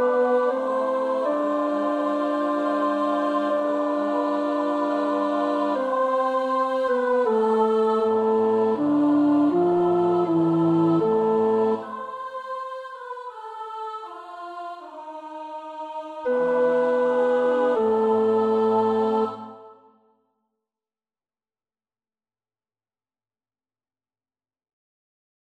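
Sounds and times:
tenor singing: 0:00.0 - 0:19.8.

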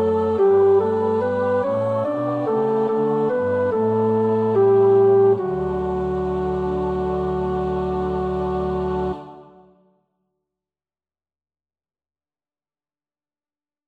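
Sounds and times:
tenor practising a choir part: 0:00.0 - 0:09.8.

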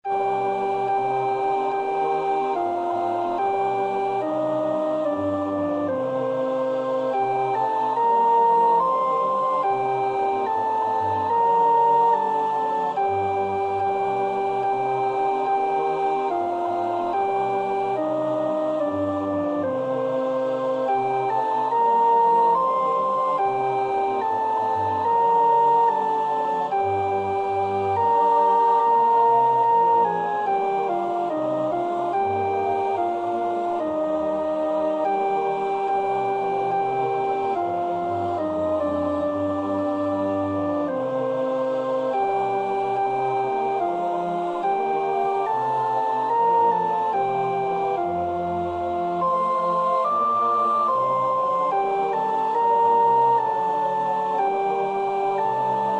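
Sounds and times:
soprano singing: 0:00.0 - 0:55.9.

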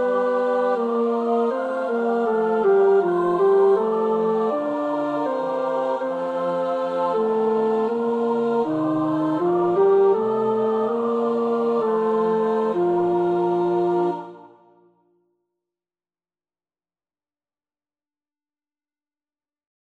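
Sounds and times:
tenor singing: 0:00.0 - 0:14.5.

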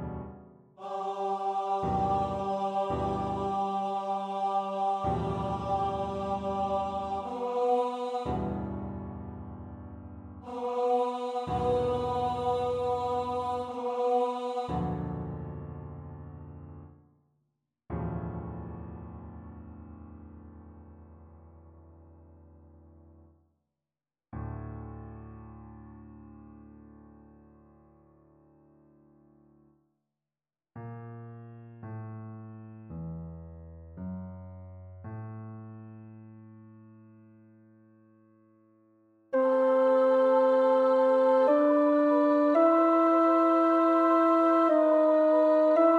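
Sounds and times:
soprano singing: 0:00.8 - 0:08.8, 0:10.5 - 0:15.1, 0:39.4 - 0:45.9.

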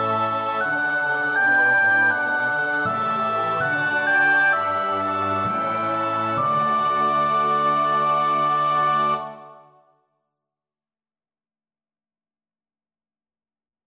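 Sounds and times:
soprano singing: 0:00.0 - 0:09.8.

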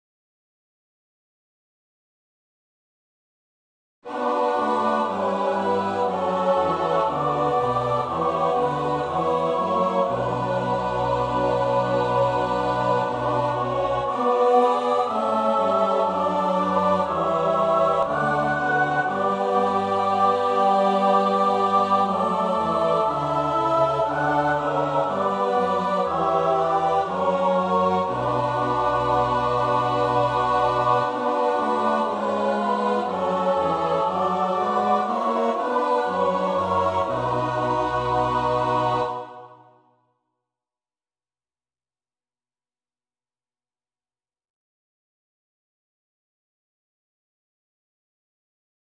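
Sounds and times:
soprano alto tenor bass choir: 0:04.1 - 0:39.9.

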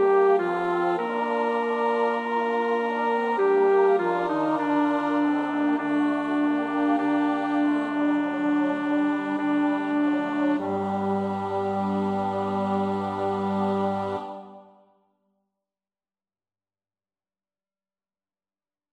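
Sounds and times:
bass choir part practice: 0:00.3 - 0:14.8.

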